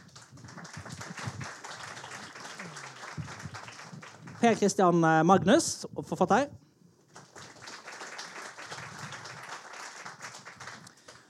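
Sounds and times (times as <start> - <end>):
audience applause: 0.0 - 4.7, 7.1 - 11.2
speech: 4.4 - 6.6.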